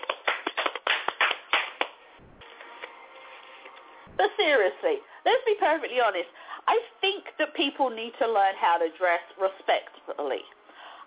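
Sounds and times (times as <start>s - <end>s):
round of applause, clapping: 0.0s - 2.0s
speech: 4.2s - 6.8s, 7.4s - 10.6s.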